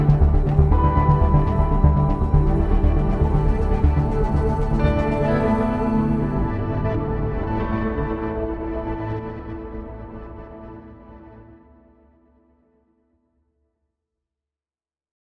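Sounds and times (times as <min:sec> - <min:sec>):
drone: 0:00.0 - 0:10.5.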